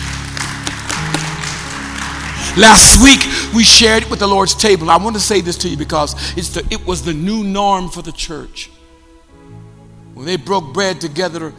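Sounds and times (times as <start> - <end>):
audience clapping: 0.0 - 4.1
speech: 2.6 - 8.7, 10.2 - 11.5.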